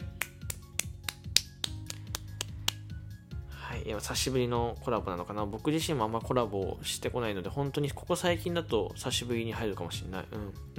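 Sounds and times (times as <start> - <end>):
hand claps: 0.0 - 3.0
speech: 3.8 - 10.7.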